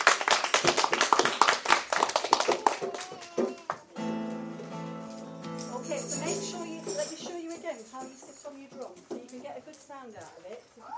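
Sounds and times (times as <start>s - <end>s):
children clapping: 0.0s - 4.0s
speech: 7.8s - 10.9s.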